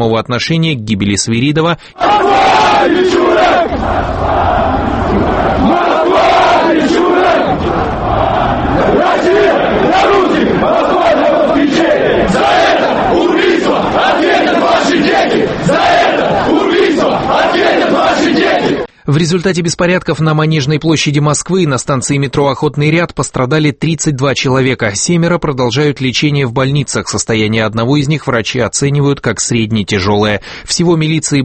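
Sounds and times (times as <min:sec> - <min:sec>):
speech: 0:00.0 - 0:08.1, 0:19.1 - 0:31.4
protest crowd shouting slogans: 0:02.0 - 0:18.9.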